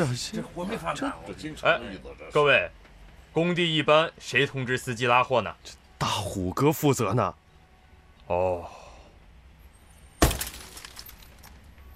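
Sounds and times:
speech: 0:00.0 - 0:02.8, 0:03.4 - 0:07.4, 0:08.3 - 0:08.8
police car window glass being smashed: 0:10.2 - 0:11.5.

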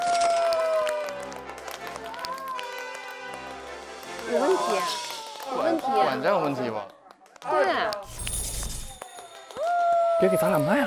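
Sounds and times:
audience applause: 0:00.0 - 0:08.1, 0:08.9 - 0:10.8
speech: 0:04.3 - 0:06.9, 0:10.2 - 0:10.8.

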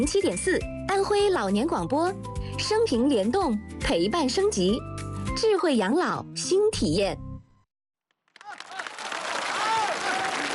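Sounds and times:
speech: 0:00.0 - 0:07.2
audience clapping: 0:08.1 - 0:10.5
voices cheering: 0:08.4 - 0:10.5.

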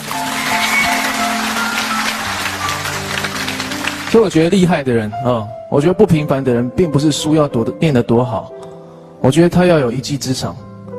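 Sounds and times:
audience applause: 0:00.0 - 0:04.4
speech: 0:04.2 - 0:08.6, 0:09.2 - 0:10.7.

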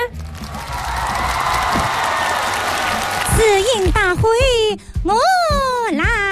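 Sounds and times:
crowd applause: 0:00.2 - 0:04.0
cheering: 0:00.3 - 0:04.0
speech: 0:03.4 - 0:06.2.

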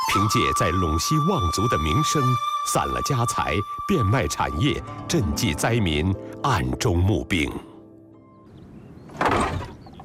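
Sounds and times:
speech: 0:00.1 - 0:07.7
courtyard gate scraping open: 0:09.1 - 0:09.9.

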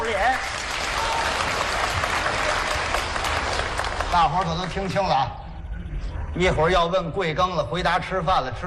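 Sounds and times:
audience applause: 0:00.0 - 0:05.0
speech: 0:04.1 - 0:05.4, 0:06.3 - 0:08.6.

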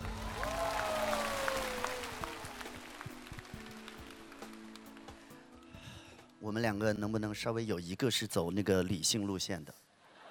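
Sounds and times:
audience clapping: 0:00.0 - 0:05.4
single tonal whistle or cheer: 0:00.4 - 0:02.2
speech: 0:06.5 - 0:09.9.

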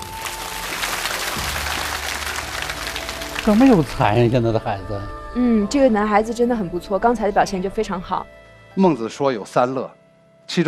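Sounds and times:
audience applause: 0:00.0 - 0:04.4
speech: 0:03.4 - 0:10.6.

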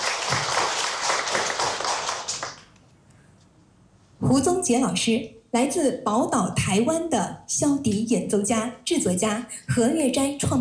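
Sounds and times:
audience applause: 0:00.0 - 0:02.7
speech: 0:04.3 - 0:10.5.

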